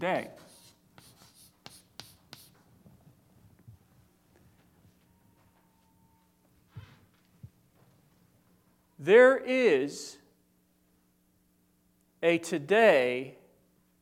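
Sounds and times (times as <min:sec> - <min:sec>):
speech: 0:00.0 - 0:00.5, 0:09.0 - 0:10.2, 0:12.2 - 0:13.4
scratchy strokes of a line drawn by hand: 0:00.0 - 0:02.6.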